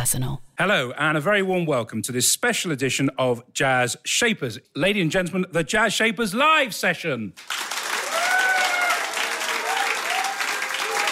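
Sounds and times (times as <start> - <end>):
speech: 0.0 - 7.7
audience applauding at a live jazz session at Browns Hotel, Mayfair, London: 7.4 - 11.0.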